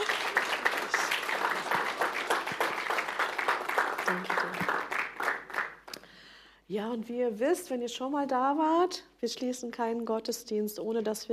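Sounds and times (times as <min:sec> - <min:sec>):
audience applause: 0:00.0 - 0:05.9
speech: 0:06.7 - 0:11.3.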